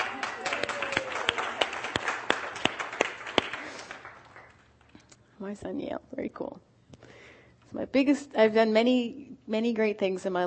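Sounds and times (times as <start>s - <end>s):
audience applause: 0.0s - 4.7s
speech: 5.4s - 6.7s, 7.7s - 10.4s.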